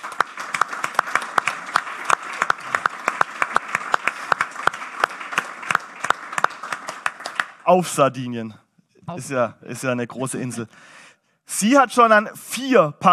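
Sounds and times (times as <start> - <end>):
audience applauding: 0.0 - 8.1
speech: 7.7 - 13.1.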